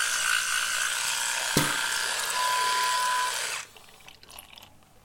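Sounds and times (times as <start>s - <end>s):
electric toothbrush buzzing: 0.0s - 3.7s.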